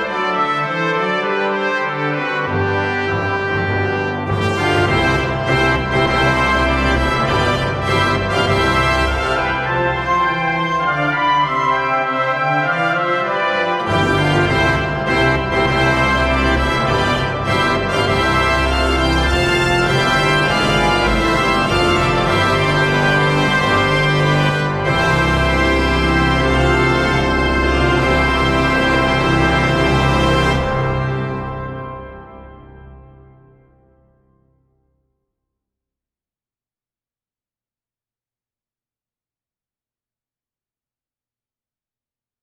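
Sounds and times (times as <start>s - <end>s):
Christmas mass march: 0.0s - 33.0s.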